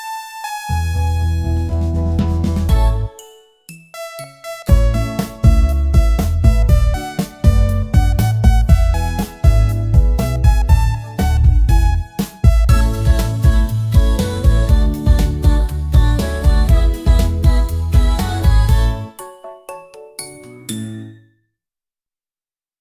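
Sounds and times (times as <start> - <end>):
karaoke song: 0.0 - 3.2, 4.7 - 19.2.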